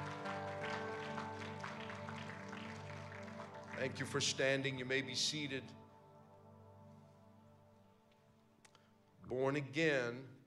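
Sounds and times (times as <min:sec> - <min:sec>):
audience clapping hands: 0:00.0 - 0:04.8
speech: 0:03.8 - 0:05.8, 0:09.3 - 0:10.4.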